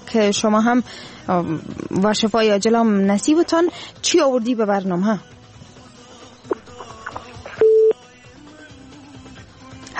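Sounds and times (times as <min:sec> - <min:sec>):
speech: 0:00.1 - 0:05.3
phone line beep after a caller's call drops: 0:07.6 - 0:08.0.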